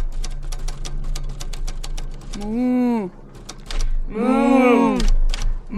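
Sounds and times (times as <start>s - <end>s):
typing on a typewriter: 0.0s - 2.5s, 3.3s - 4.0s, 5.0s - 5.6s
speech: 2.4s - 3.2s, 4.1s - 4.4s.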